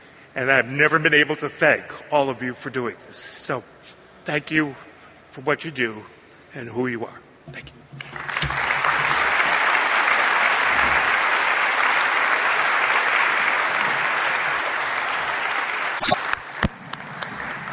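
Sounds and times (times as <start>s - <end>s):
speech: 0.4s - 8.1s
audience applause: 8.0s - 17.7s.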